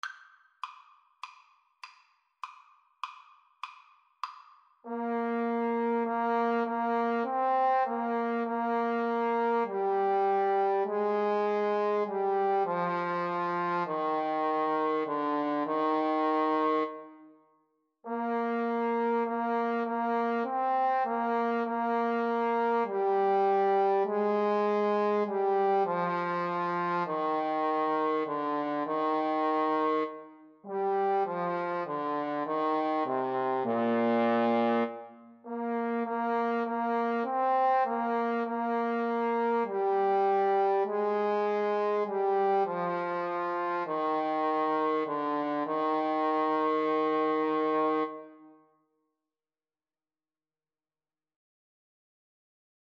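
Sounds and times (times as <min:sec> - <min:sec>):
trombone duet: 0:04.9 - 0:17.0, 0:18.1 - 0:48.3.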